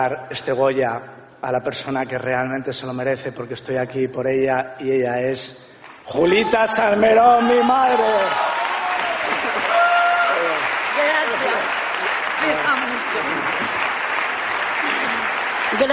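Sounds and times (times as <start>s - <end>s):
speech: 0.0s - 8.6s
audience applause: 7.4s - 15.9s.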